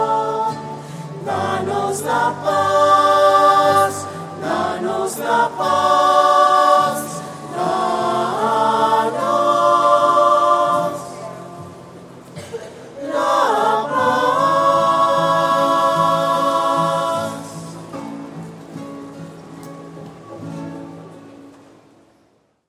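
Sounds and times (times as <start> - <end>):
voices singing: 0.0 - 11.7, 13.0 - 18.0.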